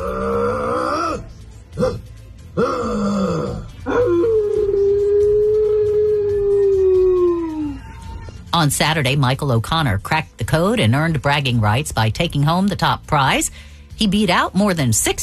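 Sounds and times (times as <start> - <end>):
human howling imitation of a Sasquatch call: 0.0 - 2.0, 2.6 - 8.3
speech: 8.6 - 15.2.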